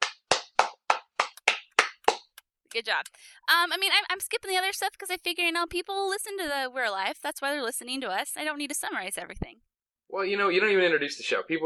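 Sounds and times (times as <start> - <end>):
hand clapping: 0.0 - 2.4
speech: 2.8 - 11.6.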